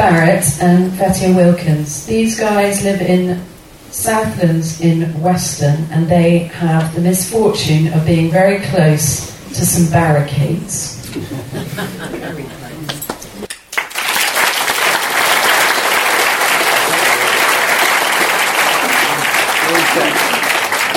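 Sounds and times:
speech: 0.1s - 12.6s
laughter: 11.0s - 13.5s
audience applause: 13.7s - 20.9s.

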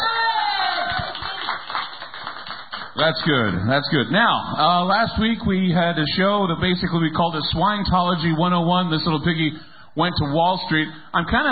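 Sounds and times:
audience applauding: 0.4s - 3.6s
speech: 3.0s - 11.5s.

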